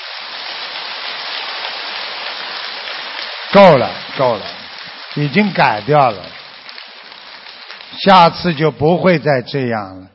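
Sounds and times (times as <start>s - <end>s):
loud applause from a large crowd: 0.0s - 8.8s
speech: 3.6s - 4.6s, 5.2s - 6.4s, 8.0s - 10.1s.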